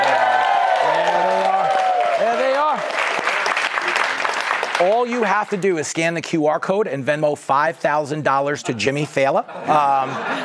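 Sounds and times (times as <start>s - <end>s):
studio audience cheering: 0.0s - 5.6s
speech: 4.8s - 10.4s
laughter: 9.4s - 10.4s.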